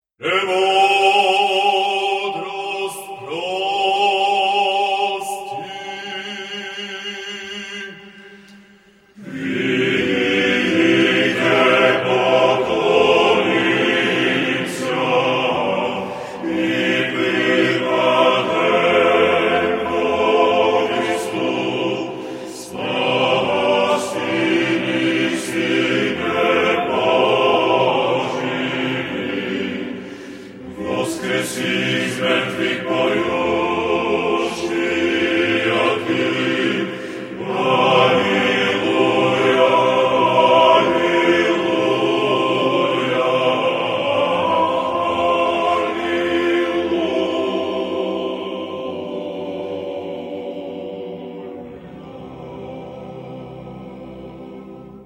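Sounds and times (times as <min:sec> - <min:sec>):
Bulgarian liturgical chant: 0:00.0 - 0:55.0.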